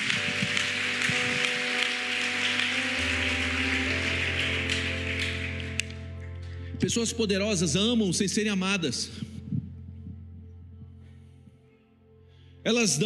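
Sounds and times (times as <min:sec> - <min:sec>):
audience applause: 0:00.0 - 0:06.2
speech: 0:06.8 - 0:09.3, 0:12.7 - 0:13.0.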